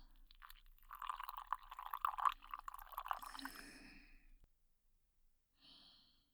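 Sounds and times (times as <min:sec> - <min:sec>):
water poured into a container to mix mud for the skin: 0:00.0 - 0:04.0.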